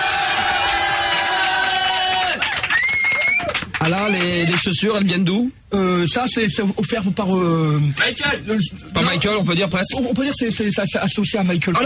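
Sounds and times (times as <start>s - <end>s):
crowd cheering and whooping in a standing ovation: 0.0s - 4.6s
applause: 0.0s - 4.8s
speech: 3.9s - 11.8s.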